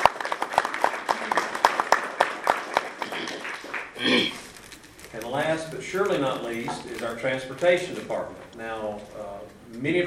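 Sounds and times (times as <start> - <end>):
audience round of applause: 0.0 - 4.4
speech: 5.6 - 10.0.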